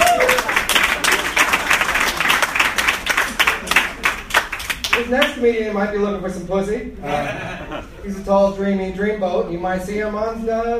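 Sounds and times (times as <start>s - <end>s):
whoops and voices: 0.0s - 0.5s
crowd applause: 0.0s - 5.0s
speech: 5.1s - 10.7s
laughter: 7.0s - 8.1s.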